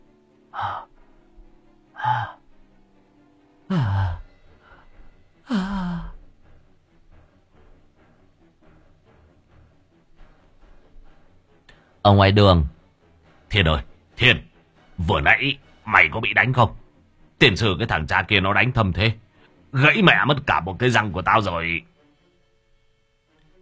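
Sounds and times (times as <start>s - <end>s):
old man lying on the ground panting heavily for breath: 0.6s - 1.2s, 2.0s - 2.5s, 3.7s - 8.1s
speech: 12.1s - 12.8s, 13.5s - 16.8s, 17.4s - 21.9s.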